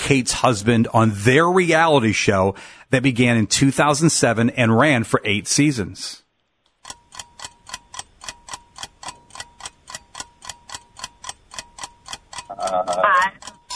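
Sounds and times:
speech: 0:00.0 - 0:06.2
quiz countdown timer ticking: 0:06.7 - 0:13.7.

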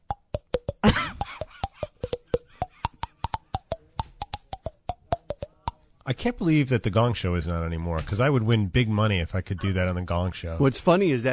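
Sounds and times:
song played by popping hollowed cheeks: 0:00.0 - 0:05.8
speech: 0:06.1 - 0:11.3.

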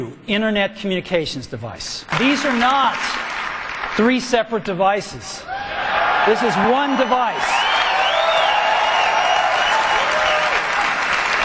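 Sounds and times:
speech: 0:00.0 - 0:03.4, 0:04.0 - 0:05.6, 0:06.3 - 0:07.7
large audience applause and cheering at a product launch: 0:02.1 - 0:04.1, 0:05.5 - 0:11.4.

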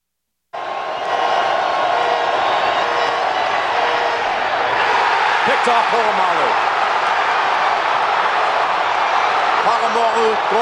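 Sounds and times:
stadium crowd roaring: 0:00.5 - 0:10.6
speech: 0:05.6 - 0:06.7, 0:09.7 - 0:10.6.

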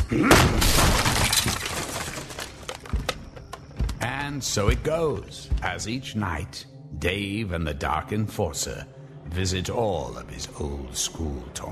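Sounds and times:
speech: 0:00.1 - 0:00.8, 0:04.4 - 0:11.7
door being broken down: 0:00.3 - 0:03.2.

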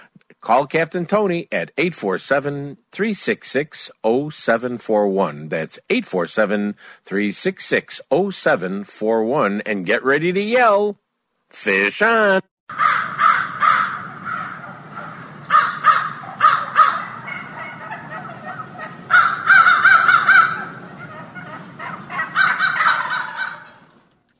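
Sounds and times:
speech: 0:00.5 - 0:13.1
wild turkeys gobbling: 0:12.7 - 0:24.2.

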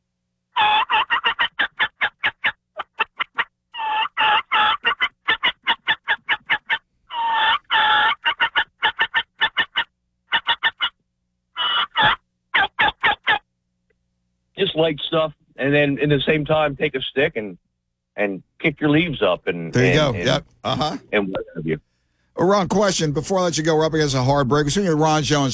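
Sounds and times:
turkey hunting call yelps and flock sounds while blind calling: 0:00.5 - 0:13.5
speech: 0:14.8 - 0:17.6, 0:18.2 - 0:21.8, 0:22.4 - 0:25.5.

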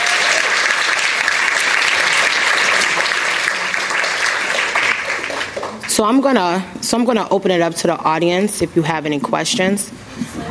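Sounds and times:
audience applause for panelists: 0:00.0 - 0:06.0
speech: 0:06.0 - 0:10.4.

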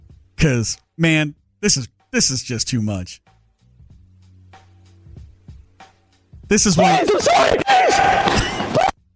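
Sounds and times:
speech: 0:00.4 - 0:03.3, 0:06.5 - 0:08.6
loud harsh human scream: 0:06.7 - 0:08.9.

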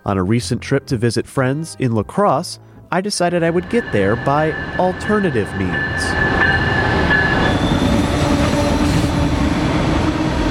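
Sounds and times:
speech: 0:00.0 - 0:06.5
metallic train wheel squeal: 0:03.5 - 0:09.2
passenger train rumbling along rails: 0:03.5 - 0:10.4.

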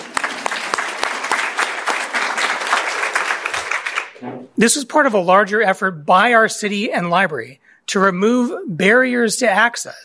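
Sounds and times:
audience applause: 0:00.0 - 0:04.2
speech: 0:04.6 - 0:10.0.

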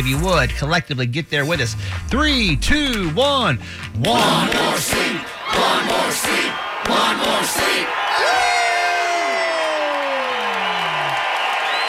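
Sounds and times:
speech: 0:00.0 - 0:08.3
crowd cheering after chant: 0:04.1 - 0:11.8
whoops and shouts: 0:07.8 - 0:11.8.

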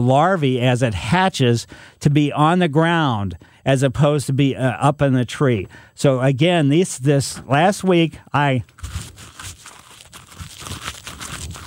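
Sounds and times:
speech: 0:00.0 - 0:09.2
person chewing tree bark: 0:08.6 - 0:11.6.

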